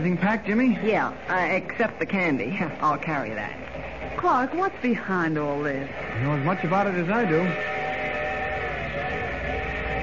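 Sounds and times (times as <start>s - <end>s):
speech: 0.0s - 7.8s
train station whistle: 6.1s - 10.0s.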